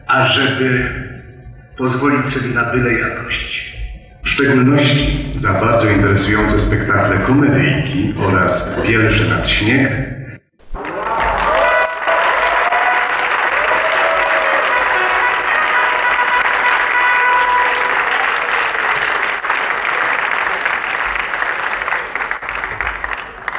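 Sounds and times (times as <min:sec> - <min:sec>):
speech: 0:00.1 - 0:01.1, 0:01.8 - 0:10.1
large theatre audience applause: 0:10.6 - 0:23.5
people cheering: 0:10.7 - 0:23.5.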